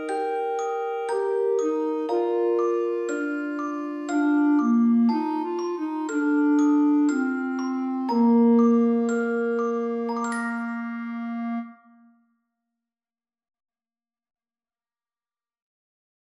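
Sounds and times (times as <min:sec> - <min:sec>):
slow lullaby: 0:00.0 - 0:12.1.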